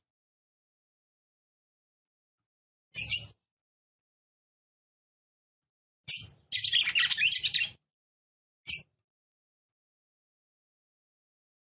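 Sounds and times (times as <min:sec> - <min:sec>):
red-cowled cardinal song: 0:03.0 - 0:03.4, 0:06.1 - 0:07.8, 0:08.7 - 0:09.0.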